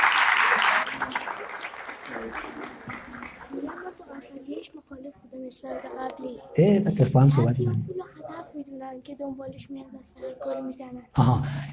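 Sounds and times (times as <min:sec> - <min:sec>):
audience applause: 0:00.0 - 0:03.8
speech: 0:05.1 - 0:08.0, 0:08.9 - 0:11.7.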